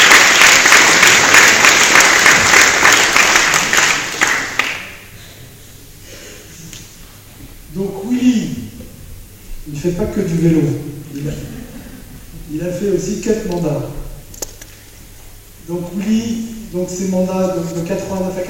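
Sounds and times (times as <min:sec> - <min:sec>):
audience applause: 0:00.0 - 0:05.1
speech: 0:09.8 - 0:11.6, 0:12.5 - 0:14.0, 0:15.7 - 0:18.4.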